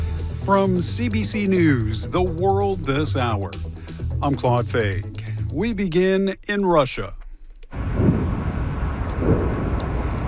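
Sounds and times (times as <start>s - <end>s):
speech: 0.5s - 7.2s
steady low rumble of outdoor noise: 0.9s - 10.2s
distant explosions rumbling: 7.7s - 10.2s.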